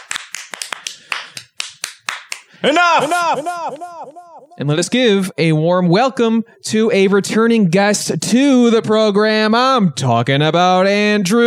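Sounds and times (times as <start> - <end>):
hands clapping in thanks for a guest: 0.0 - 2.6
laughter: 2.6 - 4.7
speech: 2.6 - 11.4.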